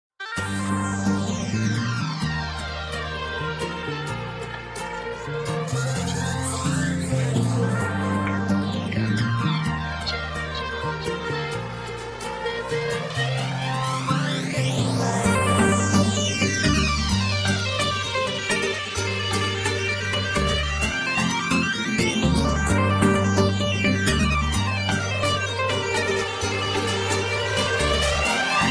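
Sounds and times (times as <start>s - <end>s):
Arabic R&B music: 0.2s - 28.6s.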